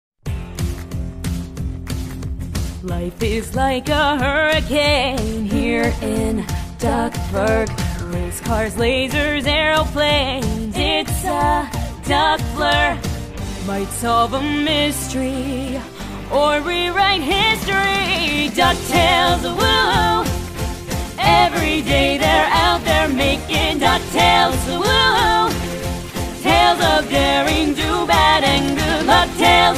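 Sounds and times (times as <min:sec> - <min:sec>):
theme song: 0:00.3 - 0:29.7.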